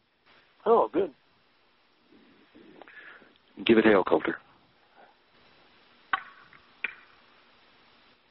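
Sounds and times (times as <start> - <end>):
quiet hiss: 0.0 - 8.2
speech: 3.7 - 4.5
wooden pole knocking on a tree: 6.1 - 7.0.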